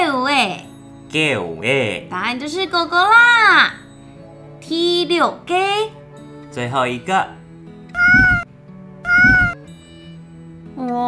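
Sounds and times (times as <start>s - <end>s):
speech: 0.4s - 3.8s, 4.7s - 8.1s
cat meowing: 7.9s - 9.7s.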